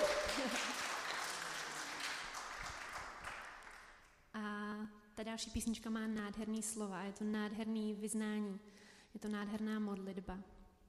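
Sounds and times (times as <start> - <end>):
audience applause: 0.0 - 4.0
speech: 5.2 - 10.6.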